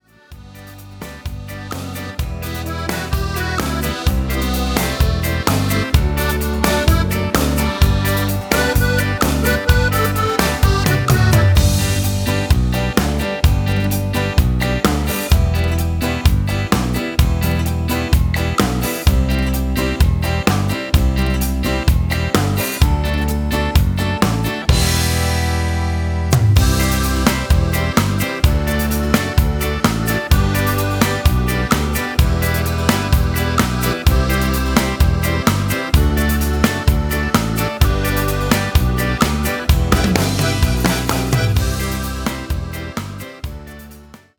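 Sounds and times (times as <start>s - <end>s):
shaking ballad music: 0.0s - 44.3s.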